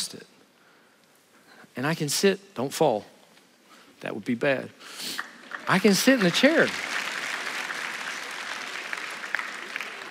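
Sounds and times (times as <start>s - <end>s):
speech: 1.8s - 3.1s, 4.0s - 6.9s
audience clapping: 5.2s - 10.1s.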